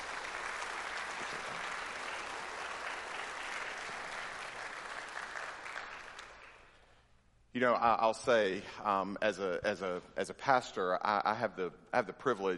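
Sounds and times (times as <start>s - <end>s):
round of applause: 0.0s - 7.0s
speech: 7.6s - 12.5s.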